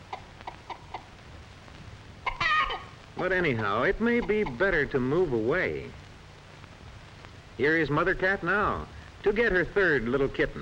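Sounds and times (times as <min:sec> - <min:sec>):
hen clucking: 0:00.0 - 0:01.2, 0:02.2 - 0:03.3, 0:04.0 - 0:04.9
speech: 0:03.2 - 0:06.0, 0:07.6 - 0:10.5.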